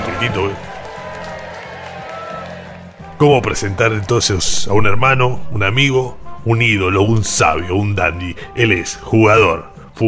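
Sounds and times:
applause: 0.0s - 4.6s
speech: 0.2s - 0.7s, 3.2s - 10.0s.

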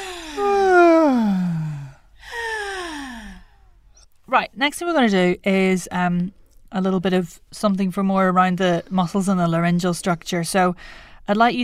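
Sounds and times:
person yawning with tongue out: 0.0s - 3.4s
speech: 4.4s - 11.6s.

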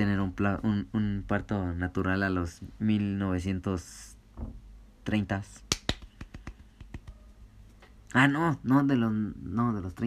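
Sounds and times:
speech: 0.0s - 5.8s, 8.1s - 10.0s
hand claps: 5.6s - 7.4s.

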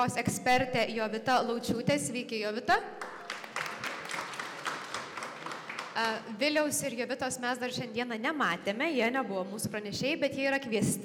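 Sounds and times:
speech: 0.0s - 3.2s, 6.0s - 11.0s
audience applause at a cybersecurity event: 3.0s - 6.2s.

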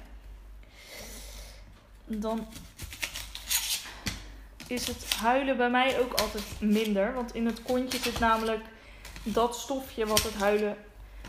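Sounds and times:
speech: 2.1s - 2.7s, 4.7s - 10.9s
knife cutting the end off an onion: 2.2s - 10.7s.

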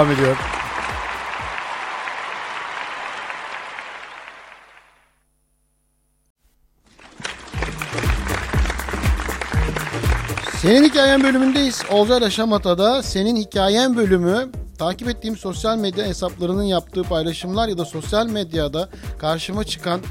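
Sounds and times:
speech: 0.0s - 0.6s, 10.6s - 20.0s
big round of applause: 0.0s - 5.1s, 6.9s - 12.4s.

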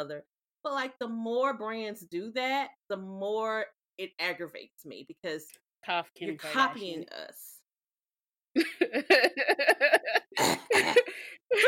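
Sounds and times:
speech: 0.0s - 7.6s, 8.6s - 9.7s, 10.4s - 11.6s
laughter: 8.6s - 11.6s
smoker's cough: 10.4s - 11.1s.

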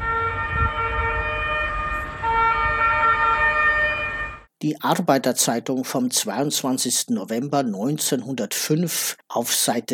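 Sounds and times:
fire engine siren: 0.0s - 4.5s
speech: 4.6s - 9.9s.

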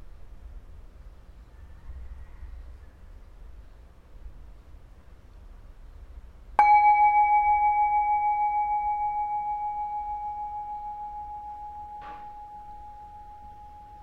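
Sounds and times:
meditation bell ringing: 6.6s - 14.0s.

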